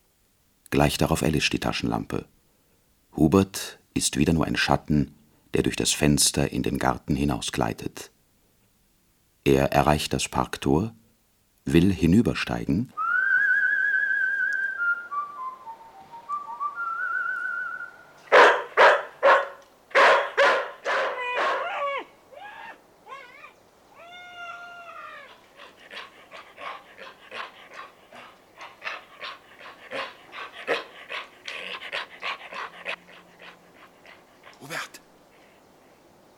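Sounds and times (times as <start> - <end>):
speech: 0.7 - 2.4, 3.2 - 8.2, 9.4 - 11.0, 11.6 - 13.0
short whistled melody: 13.0 - 18.0
dog panting: 18.3 - 21.6, 25.3 - 35.6
dog barking: 18.3 - 22.1, 25.2 - 33.6.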